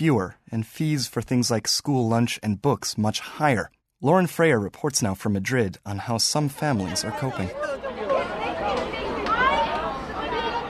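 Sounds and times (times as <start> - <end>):
speech: 0.0 - 7.9
schoolchildren chatting outside school: 6.5 - 10.6.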